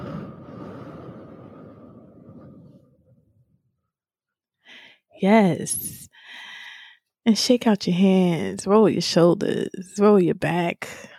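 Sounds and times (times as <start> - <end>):
slow exhale through the mouth in a guided breathing exercise: 0.0 - 2.8
speech: 5.2 - 6.1, 7.2 - 11.1.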